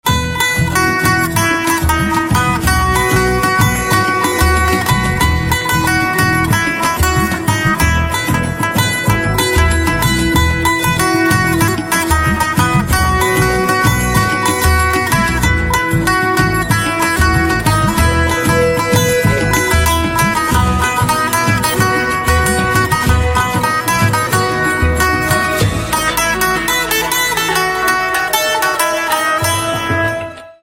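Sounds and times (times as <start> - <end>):
mandolin: 0.0 - 30.6.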